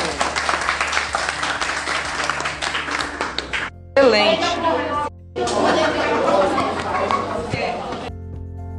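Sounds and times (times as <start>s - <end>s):
classroom applause: 0.0s - 3.7s, 5.4s - 7.9s
speech: 4.0s - 4.8s
laughter: 4.8s - 8.1s.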